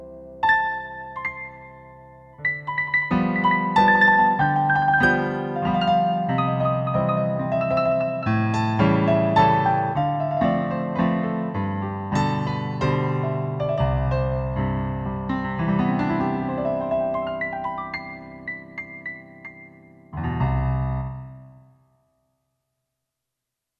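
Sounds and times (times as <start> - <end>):
Roland SC-880 acoustic piano factory patch: 0.0 - 21.7.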